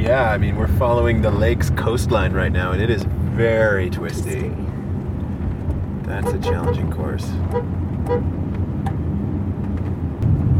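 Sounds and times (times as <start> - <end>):
low rumble of engine and road noise: 0.0 - 10.5
speech: 0.1 - 4.8, 6.1 - 8.5
car tires squealing: 6.1 - 8.3.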